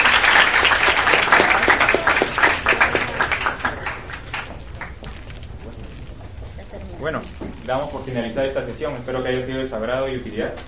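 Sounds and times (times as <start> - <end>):
crowd applauding: 0.0 - 5.7
speech: 7.0 - 10.6.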